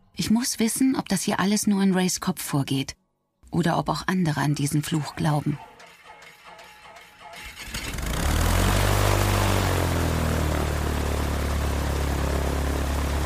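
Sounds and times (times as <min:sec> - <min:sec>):
speech: 0:00.2 - 0:05.7
small propeller airplane engine in flight: 0:07.6 - 0:13.2.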